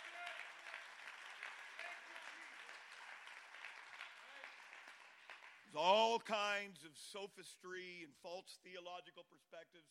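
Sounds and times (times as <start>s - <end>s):
audience clapping hands: 0.0s - 6.0s
speech: 5.7s - 9.8s.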